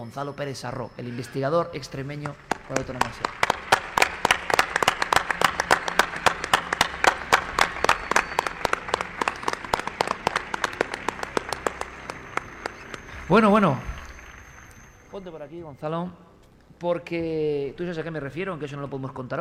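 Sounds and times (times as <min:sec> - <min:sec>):
speech: 0:00.0 - 0:03.6, 0:13.3 - 0:13.9, 0:15.2 - 0:19.3
audience applause: 0:01.8 - 0:15.5.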